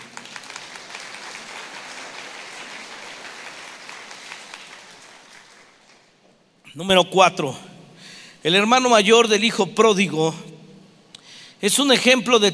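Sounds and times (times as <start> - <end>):
audience applause: 0.0 - 6.2
speech: 6.8 - 7.7, 8.4 - 10.5, 11.6 - 12.5.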